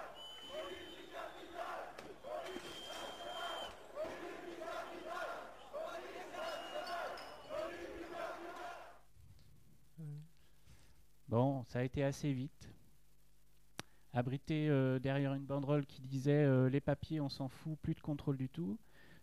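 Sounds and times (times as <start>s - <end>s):
protesters shouting and chanting during a clash with riot police: 0.0s - 9.0s
speech: 11.7s - 12.8s, 14.1s - 19.2s.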